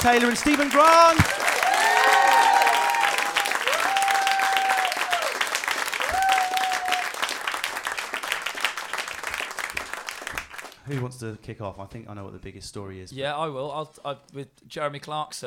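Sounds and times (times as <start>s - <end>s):
speech: 0.0s - 1.5s, 10.9s - 15.4s
audience applause: 0.0s - 10.8s.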